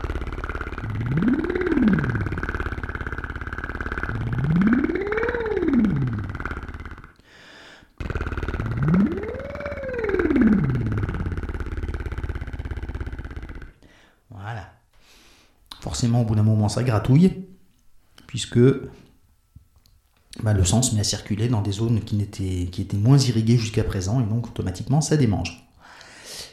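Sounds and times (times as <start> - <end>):
buzzing voice imitating an idling engine revving up: 0.0 - 7.2, 8.0 - 13.8
speech: 1.0 - 1.4, 16.0 - 17.4, 18.4 - 19.0, 20.4 - 25.6.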